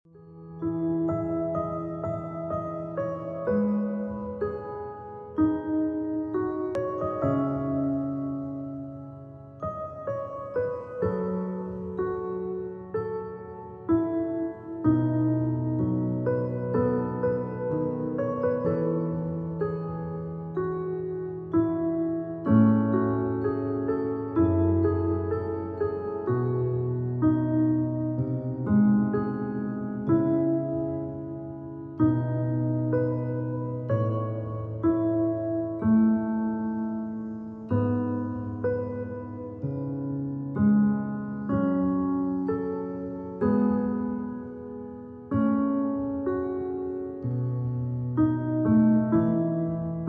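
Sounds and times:
relaxing piano: 0.0s - 50.0s.

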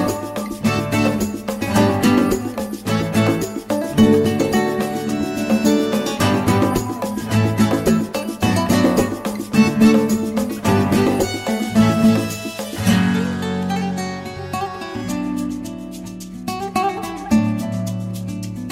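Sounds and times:
chill guitar music: 0.0s - 18.7s.

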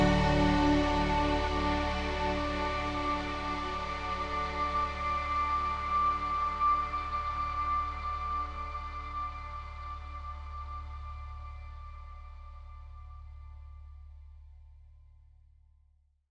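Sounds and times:
smooth ambient piano: 0.0s - 12.4s.

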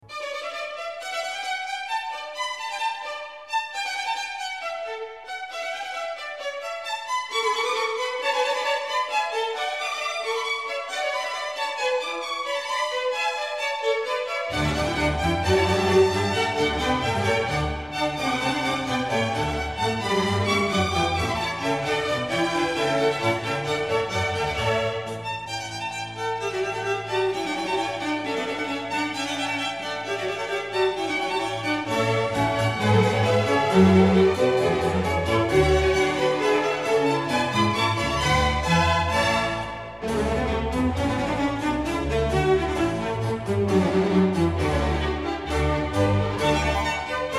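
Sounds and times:
baroque orchestral piece in D major: 0.0s - 47.3s.

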